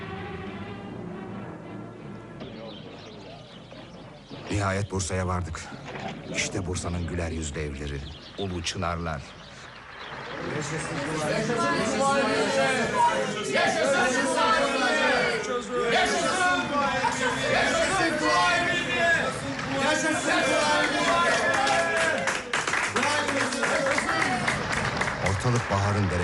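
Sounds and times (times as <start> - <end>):
speech: 4.6 - 9.4, 10.5 - 14.7, 15.4 - 18.8, 19.8 - 21.6, 25.4 - 26.2
crowds along the roadside in Bursa applauding and cheering: 9.7 - 13.1, 17.5 - 26.2
excited crowd chatter in Bursa: 10.1 - 26.2.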